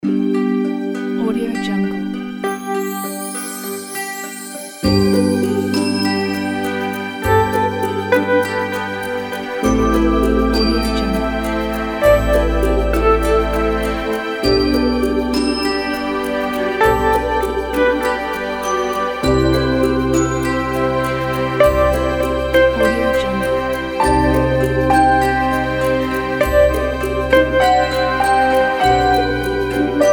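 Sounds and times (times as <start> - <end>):
Christmas advertising background music: 0.0 - 30.1.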